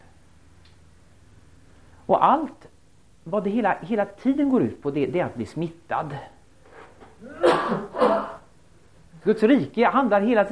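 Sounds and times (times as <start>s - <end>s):
speech: 2.1s - 6.4s, 7.2s - 8.4s, 9.2s - 10.5s
person sneezing: 7.2s - 8.5s.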